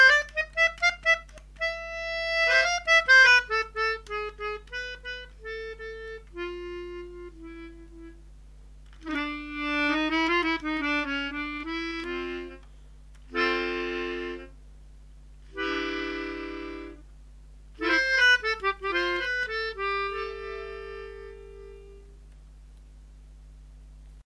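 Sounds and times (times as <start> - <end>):
harmonica playing in a forest: 0.0 - 8.2, 9.0 - 12.6, 13.3 - 14.6, 15.5 - 17.0, 17.8 - 22.2.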